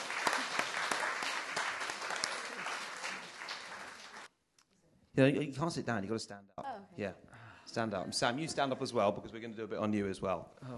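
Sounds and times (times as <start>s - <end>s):
audience round of applause: 0.0s - 4.3s
speech: 5.2s - 10.7s.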